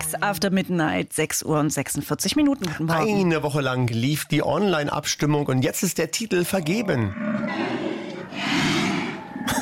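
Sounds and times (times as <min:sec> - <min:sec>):
speech: 0:00.2 - 0:08.8
brown bears calling with low growling and huffing: 0:06.4 - 0:09.5.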